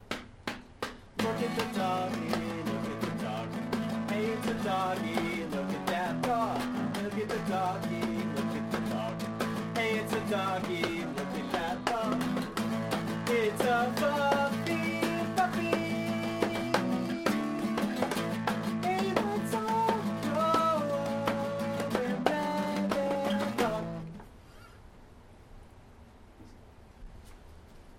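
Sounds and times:
dog singing: 1.2s - 12.6s, 13.2s - 18.1s, 18.7s - 24.1s.

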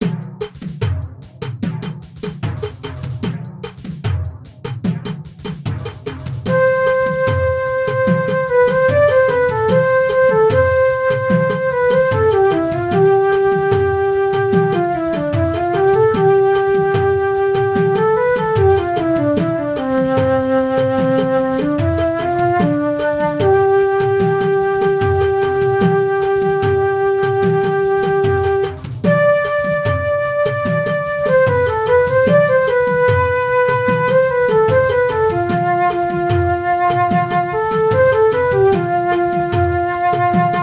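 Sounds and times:
pandeiro song: 0.9s - 40.6s.

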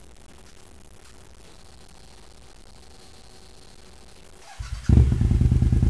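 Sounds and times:
warmed up engine starting: 4.4s - 5.4s.

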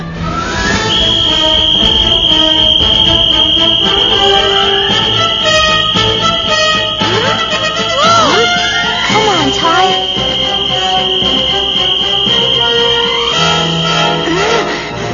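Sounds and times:
whistle: 0.2s - 15.0s.

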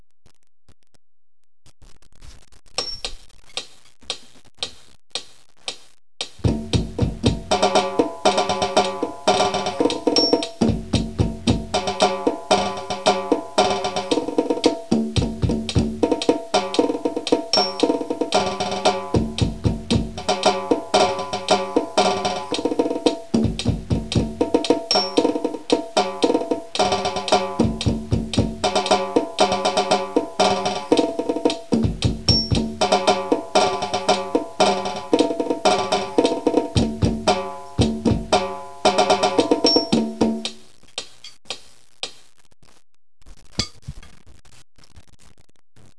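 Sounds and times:
drum cadence: 2.8s - 42.3s.

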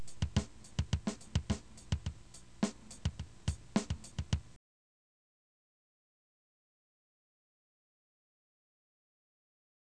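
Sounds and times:
drum: 0.0s - 4.6s.

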